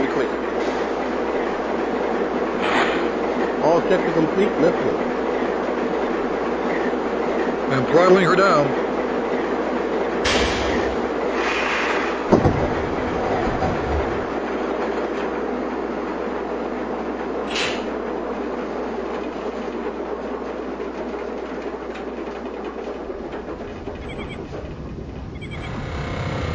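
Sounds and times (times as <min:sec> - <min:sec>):
coal turbine: 0:00.0 - 0:26.5.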